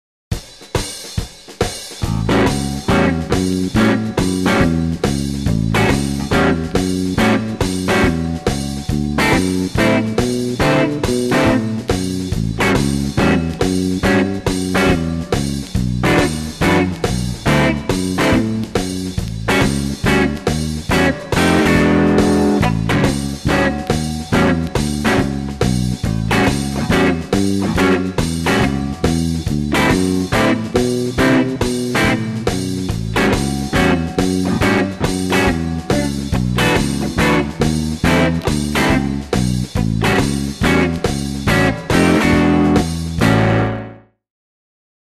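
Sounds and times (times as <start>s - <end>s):
rhythm guitar: 0.3s - 44.1s.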